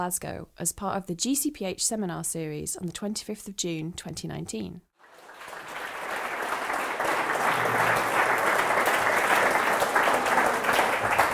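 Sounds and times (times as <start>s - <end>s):
speech: 0.0s - 4.9s
audience clapping: 5.0s - 11.3s.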